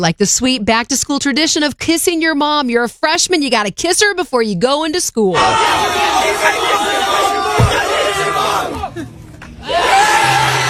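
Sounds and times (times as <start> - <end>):
speech: 0.0 - 7.2
crowd yelling: 5.4 - 10.6.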